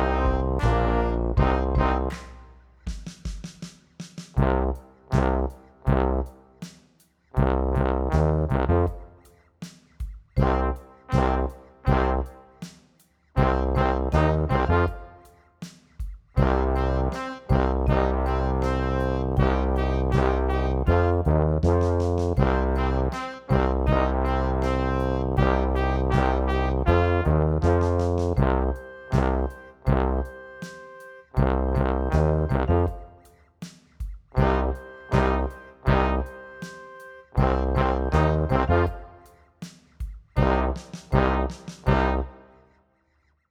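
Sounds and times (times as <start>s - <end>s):
power rock playback with loud tuba: 0.0s - 3.3s, 4.2s - 9.3s, 10.4s - 12.7s, 13.4s - 15.4s, 16.4s - 33.3s, 34.3s - 39.4s, 40.4s - 42.5s.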